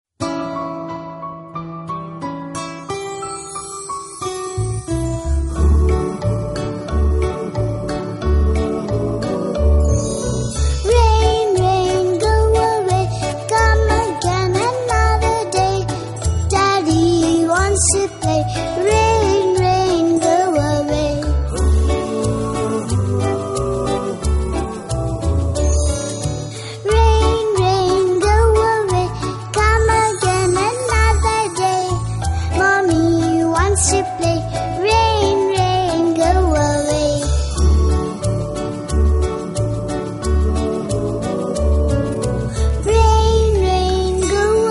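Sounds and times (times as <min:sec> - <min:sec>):
nursery rhyme: 0:02.8 - 0:44.6.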